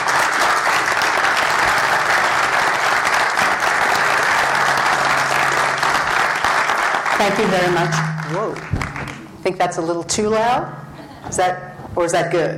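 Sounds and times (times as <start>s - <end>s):
audience applause welcoming a speaker at a university talk: 0.0s - 9.3s
speech: 7.2s - 8.8s, 9.4s - 12.5s.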